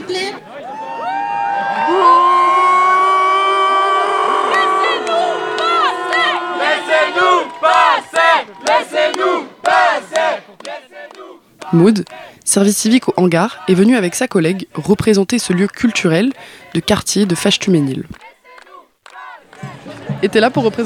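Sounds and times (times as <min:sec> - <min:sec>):
crowd shouting and jeering at police: 0:00.0 - 0:10.6
speech: 0:11.7 - 0:18.2, 0:20.2 - 0:20.8.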